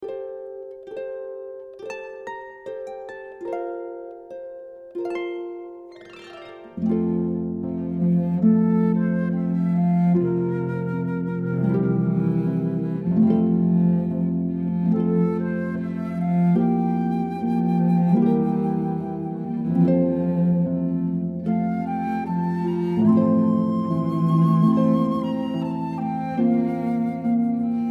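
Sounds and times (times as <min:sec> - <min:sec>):
harp: 0:00.0 - 0:27.8
flute: 0:05.2 - 0:27.8
cello: 0:06.1 - 0:27.8.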